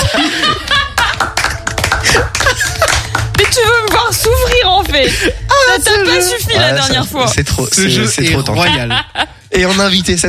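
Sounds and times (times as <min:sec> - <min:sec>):
laughter: 0:00.0 - 0:03.3, 0:08.3 - 0:10.0
hands clapping: 0:00.0 - 0:05.0
speech: 0:05.0 - 0:10.2.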